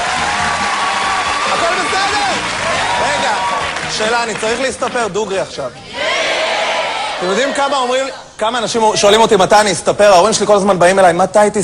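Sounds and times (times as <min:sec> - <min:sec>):
audience clapping and cheering for a stand-up comedian taking the stage: 0:00.0 - 0:07.7
speech: 0:04.0 - 0:05.9, 0:07.2 - 0:11.6.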